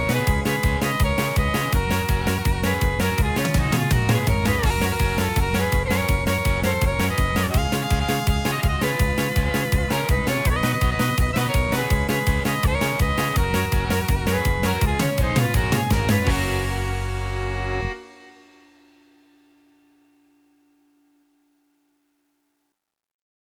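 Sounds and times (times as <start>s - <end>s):
Yamaha keyboard accompaniment style: 0.0s - 18.6s.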